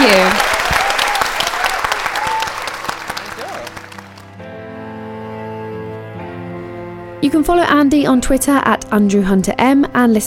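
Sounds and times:
audience applause: 0.0s - 4.4s
speech: 7.3s - 10.2s.

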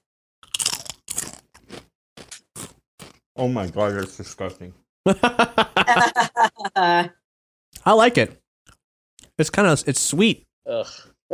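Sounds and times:
crunching a sweet creamy mayo and tempura-shrimp flavored Japanese chip: 0.4s - 4.1s
speech: 3.4s - 7.2s, 7.8s - 8.4s, 9.4s - 11.3s
laughter: 5.1s - 7.1s.

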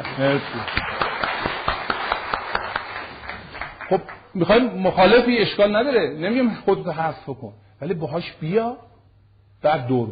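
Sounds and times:
audience clapping in rhythm at a talk: 0.0s - 4.6s
speech: 0.1s - 1.0s, 3.9s - 8.9s, 9.6s - 10.1s.

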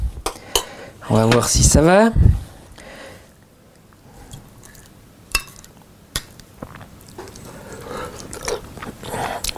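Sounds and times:
speech: 1.1s - 2.4s
person tasting and chewing a clementine sauce with foie gras: 4.3s - 9.5s
wet mouth noises: 6.6s - 9.5s.

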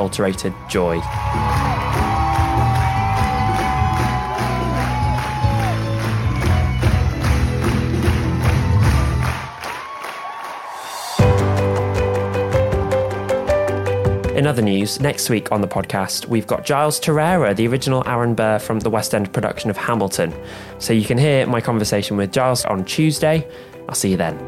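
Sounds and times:
speech: 0.0s - 1.7s, 14.4s - 24.4s
theatre audience applauding: 0.0s - 13.8s.

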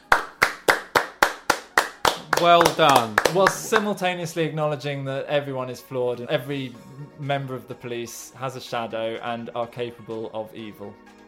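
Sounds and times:
person clapping: 0.0s - 4.0s
speech: 2.4s - 11.2s.

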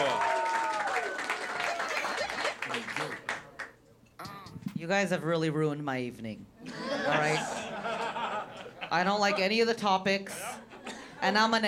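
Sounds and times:
comedy audience whoops and cheers: 0.0s - 2.2s
comedy audience applause: 0.0s - 3.7s
laughter: 1.4s - 3.2s, 6.6s - 9.7s
speech: 4.8s - 7.5s, 8.9s - 10.6s, 11.2s - 11.6s.

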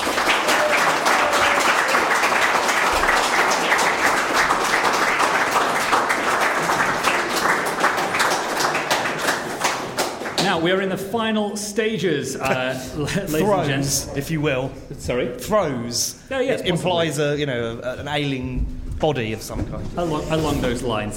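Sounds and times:
audience round of applause: 0.0s - 10.5s
speech: 10.7s - 21.1s.

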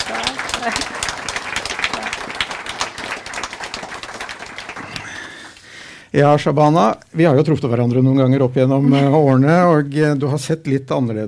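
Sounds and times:
audience applause: 0.0s - 5.7s
speech: 0.1s - 1.1s, 6.1s - 11.2s.

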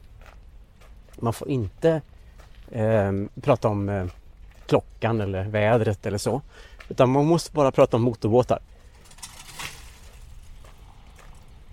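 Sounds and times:
low steady outdoor rumble: 0.0s - 11.7s
speech: 1.2s - 2.1s, 2.7s - 8.7s
ice falling from a roof: 9.0s - 10.6s.

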